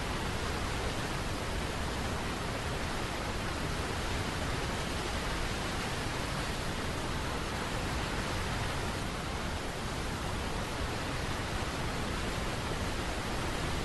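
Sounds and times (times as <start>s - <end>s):
waterfall roaring: 0.0s - 13.8s.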